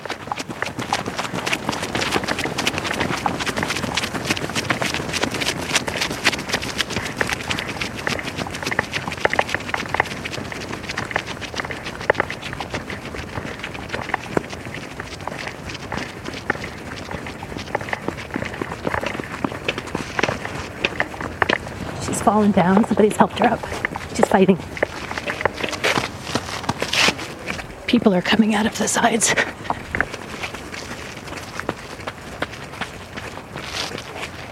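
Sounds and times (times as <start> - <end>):
running footsteps of two people taking off down a path: 0.0 - 34.5
speech: 22.3 - 24.8, 27.9 - 29.5.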